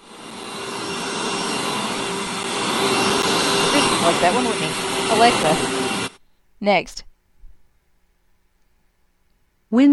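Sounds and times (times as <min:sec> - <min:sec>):
vacuum cleaner running: 0:00.0 - 0:06.2
speech: 0:04.1 - 0:05.8, 0:06.6 - 0:07.1, 0:09.7 - 0:09.9.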